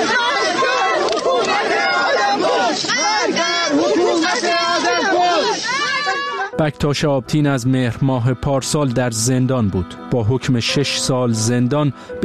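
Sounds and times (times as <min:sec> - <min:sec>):
crowd shouting slogans at funeral: 0:00.0 - 0:06.6
speech: 0:06.6 - 0:12.2.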